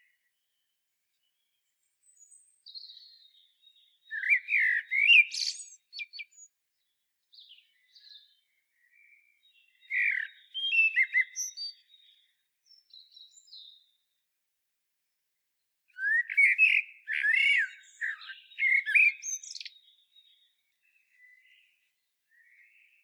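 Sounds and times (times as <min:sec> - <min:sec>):
common blackbird song: 0:01.3 - 0:14.0, 0:15.9 - 0:23.0.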